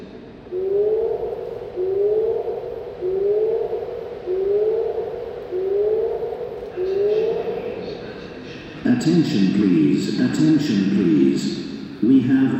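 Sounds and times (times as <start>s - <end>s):
fire alarm siren whooping: 0.5s - 7.8s
speech: 9.0s - 12.5s.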